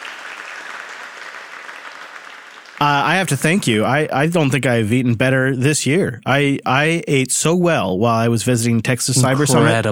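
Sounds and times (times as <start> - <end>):
crowd applause: 0.0 - 3.8
speech: 2.8 - 9.9.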